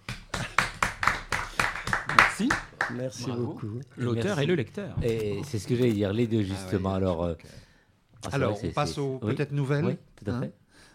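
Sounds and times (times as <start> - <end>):
audience applause: 0.0 - 3.0
speech: 2.4 - 10.9.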